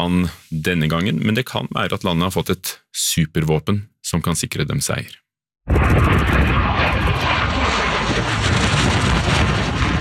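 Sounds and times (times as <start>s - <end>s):
speech: 0.0s - 7.0s
Russian MiG-29 fighter jet roaring low over the ground in Wisconsin: 5.7s - 9.9s.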